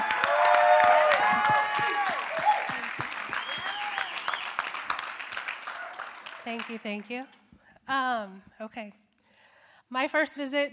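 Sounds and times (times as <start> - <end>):
cheers and whoops: 0.0 - 4.7
crowd clapping: 0.0 - 7.3
speech: 6.5 - 9.0, 9.9 - 10.7.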